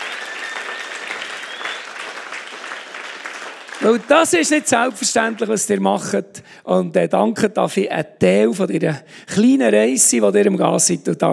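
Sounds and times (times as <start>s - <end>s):
thin high whistle: 0.0s - 2.1s
loud crowd applause: 0.0s - 5.8s
speech: 3.8s - 11.3s.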